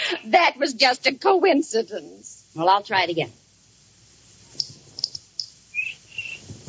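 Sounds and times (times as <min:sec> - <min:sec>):
speech: 0:00.1 - 0:03.4
cricket chirping: 0:04.6 - 0:06.4.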